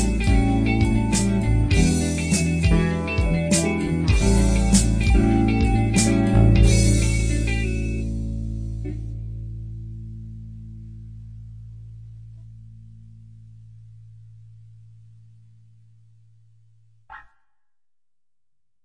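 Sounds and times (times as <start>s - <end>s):
romantic music: 0.0s - 9.2s.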